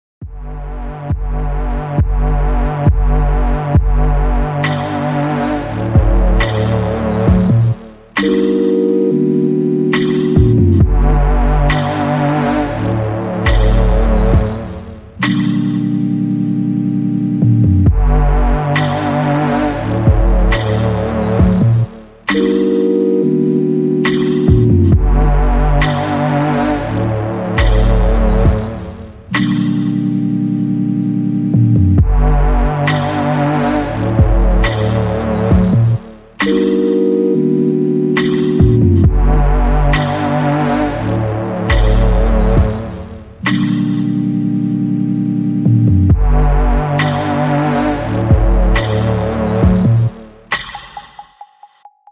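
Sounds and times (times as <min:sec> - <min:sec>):
instrumental music: 0:00.2 - 0:52.0.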